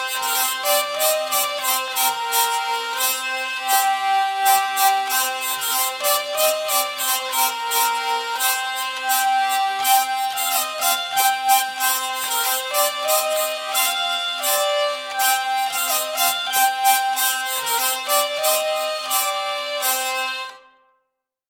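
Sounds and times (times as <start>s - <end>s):
hurdy-gurdy lament: 0.0s - 20.7s.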